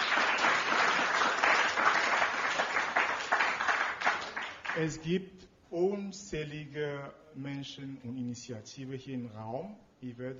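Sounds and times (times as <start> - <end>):
audience applause: 0.0 - 4.9
speech: 4.8 - 10.3.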